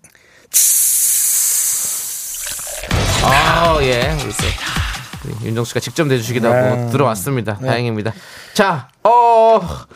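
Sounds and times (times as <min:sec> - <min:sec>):
speech: 0:00.5 - 0:00.8, 0:03.2 - 0:09.9
fizzy cider being poured: 0:01.9 - 0:06.7.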